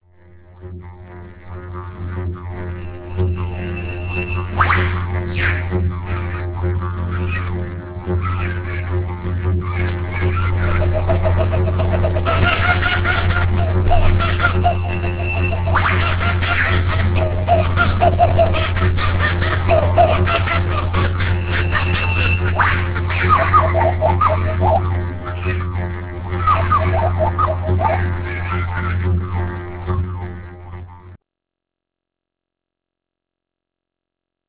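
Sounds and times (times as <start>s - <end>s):
didgeridoo: 0.0s - 31.2s
laughter: 9.7s - 25.6s, 26.3s - 29.1s.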